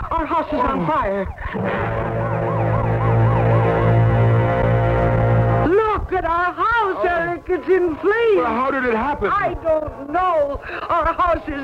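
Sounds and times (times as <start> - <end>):
speech: 0.2 - 2.3, 6.1 - 11.6
fire engine siren: 0.6 - 5.7
low engine rumble: 1.6 - 5.7.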